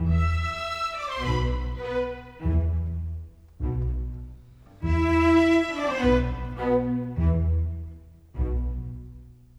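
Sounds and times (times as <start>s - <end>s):
strings: 0.0s - 9.5s.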